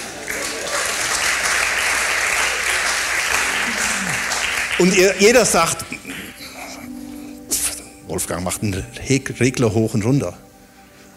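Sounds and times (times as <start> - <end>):
audience applauding loudly: 0.0 - 6.5
speech: 4.8 - 5.9, 8.2 - 10.5.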